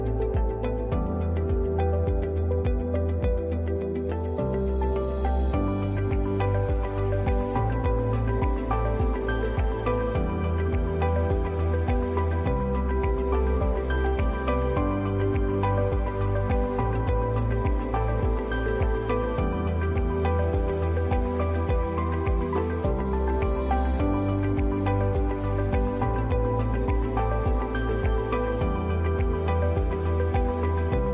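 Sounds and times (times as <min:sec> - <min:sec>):
upbeat ambient music: 0:00.0 - 0:31.1.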